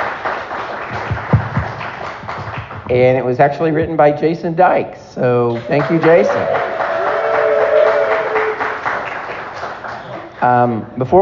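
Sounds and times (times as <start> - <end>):
small group clapping: 0.0 - 3.0, 5.5 - 10.4
speech: 2.9 - 6.8, 10.4 - 11.2.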